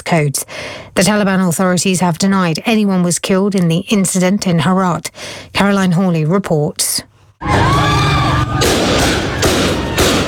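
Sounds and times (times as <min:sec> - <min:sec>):
speech: 0:00.1 - 0:09.2
protest crowd shouting and screaming: 0:07.4 - 0:10.2
live gunfire at street protest: 0:08.3 - 0:10.2.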